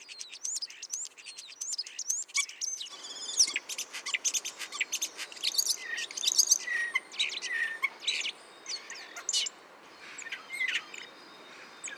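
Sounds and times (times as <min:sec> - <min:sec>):
common starling song: 0:01.8 - 0:11.9.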